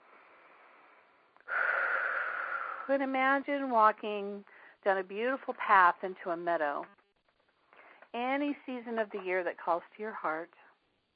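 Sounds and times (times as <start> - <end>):
deep breath in: 0.1 - 2.9
speech: 2.9 - 7.0, 8.1 - 10.6.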